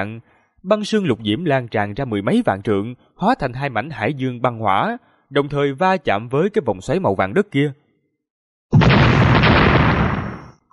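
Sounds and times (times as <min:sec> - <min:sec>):
speech: 0:00.0 - 0:07.8
violent continuous explosion booms: 0:08.8 - 0:10.6.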